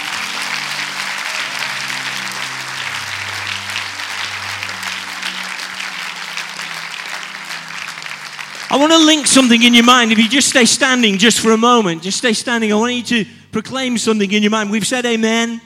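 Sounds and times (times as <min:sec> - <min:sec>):
sustained applause from a large crowd: 0:00.0 - 0:11.3
speech: 0:08.8 - 0:15.6.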